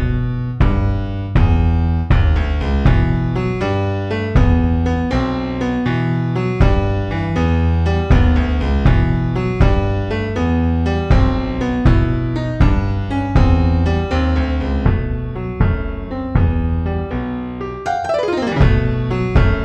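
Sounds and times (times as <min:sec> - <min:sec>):
bass drum: 0:00.0 - 0:03.7, 0:04.4 - 0:05.1, 0:06.6 - 0:07.4, 0:08.1 - 0:10.4, 0:11.1 - 0:17.0, 0:18.4 - 0:19.6
piano: 0:00.0 - 0:19.6.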